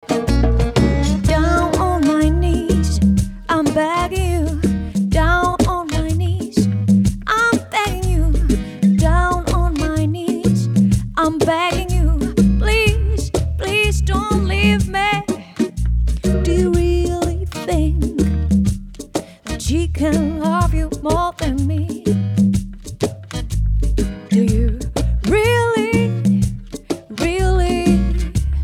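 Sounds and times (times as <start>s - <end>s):
rhythm and soul medley: 0.0s - 28.6s.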